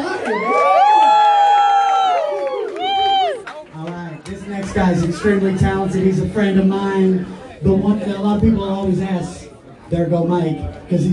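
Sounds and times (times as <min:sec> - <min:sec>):
crowd cheering: 0:00.0 - 0:06.8
speech: 0:04.7 - 0:11.1.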